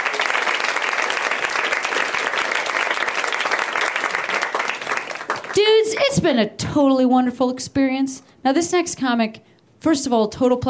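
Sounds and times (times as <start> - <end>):
audience clapping for comedians at a comedy show: 0.0 - 6.2
speech: 5.9 - 10.6.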